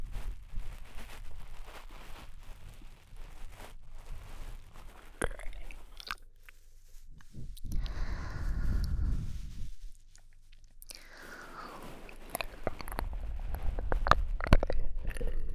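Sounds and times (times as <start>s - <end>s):
bead cushion rustling ASMR: 0.0s - 15.5s
ASMR ear licking sounds: 7.2s - 15.5s.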